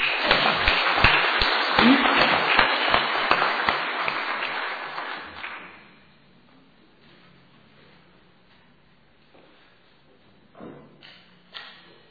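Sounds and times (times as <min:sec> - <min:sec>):
audience applause: 0:00.0 - 0:05.6.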